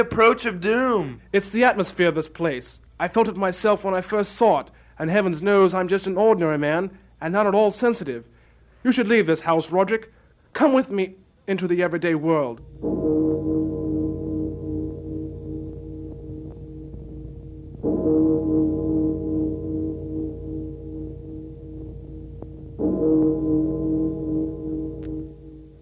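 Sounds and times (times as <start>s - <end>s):
speech: 0.0s - 13.2s
deep bell tolling: 12.6s - 25.7s.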